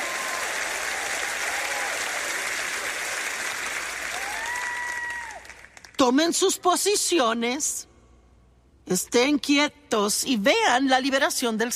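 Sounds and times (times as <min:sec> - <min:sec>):
cheering: 0:00.0 - 0:05.7
large crowd applauding: 0:00.0 - 0:06.0
speech: 0:06.0 - 0:07.9, 0:08.9 - 0:11.7.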